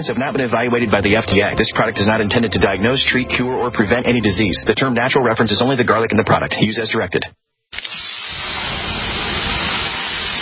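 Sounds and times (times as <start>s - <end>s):
speech: 0.0s - 7.4s
water splashing on hot sauna rocks: 7.7s - 10.4s
steam hissing from hot sauna rocks: 7.8s - 10.4s.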